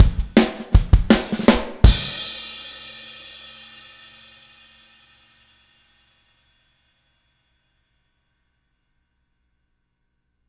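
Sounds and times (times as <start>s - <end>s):
outro full music mix with drums: 0.0s - 3.8s.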